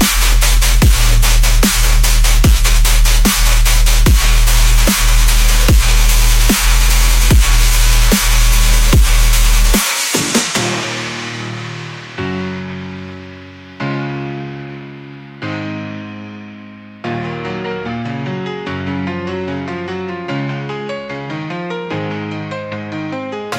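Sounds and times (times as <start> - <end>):
dubstep music: 0.0 - 13.9.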